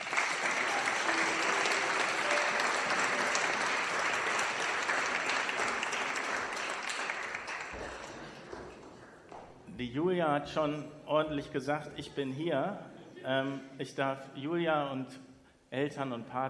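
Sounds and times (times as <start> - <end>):
audience applause: 0.0 - 9.3
speech: 9.8 - 16.4.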